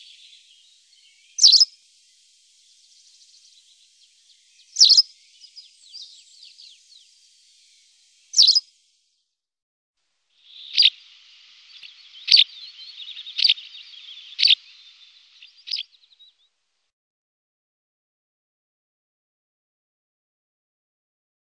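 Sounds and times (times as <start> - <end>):
birds: 0.0 - 9.1, 10.4 - 16.6.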